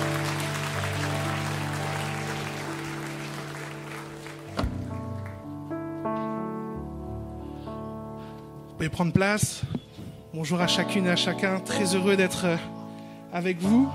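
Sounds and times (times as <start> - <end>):
audience clapping: 0.0 - 5.7
sustained keyboard chords: 0.0 - 13.9
speech: 8.8 - 9.8, 10.4 - 13.9.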